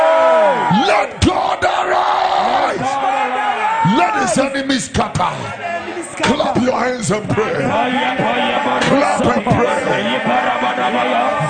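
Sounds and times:
audience shouting hey: 0.0 - 4.4, 7.4 - 11.4
speech: 0.7 - 1.7, 4.3 - 11.4.

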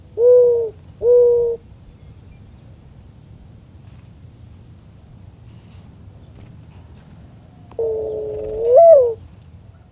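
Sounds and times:
Mourning Dove giving a long low coo: 0.2 - 1.6, 7.8 - 9.2.

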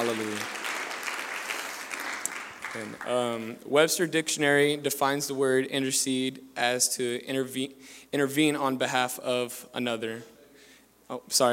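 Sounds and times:
audience clapping hands in worship: 0.0 - 3.4
speech: 2.8 - 10.3, 11.1 - 11.5.

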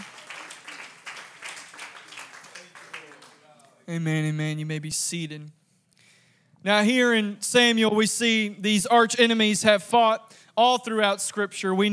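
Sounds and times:
audience clapping hands: 0.0 - 3.7
speech: 3.9 - 5.6, 6.6 - 11.9.

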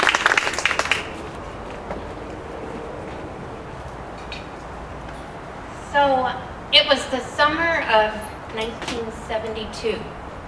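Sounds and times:
audience applause: 0.0 - 1.4
speech: 6.0 - 10.2.

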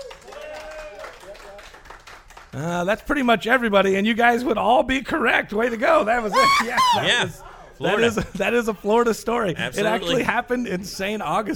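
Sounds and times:
crowd applauding: 0.0 - 2.6
speech: 2.5 - 11.5
person cheering: 6.3 - 7.3
laughter: 6.3 - 8.6.

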